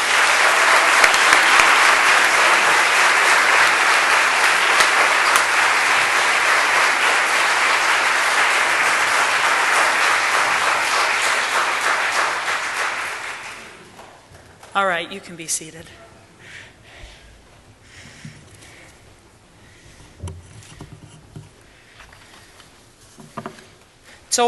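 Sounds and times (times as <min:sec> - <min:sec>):
crowd applauding: 0:00.0 - 0:14.2
speech: 0:15.0 - 0:16.1.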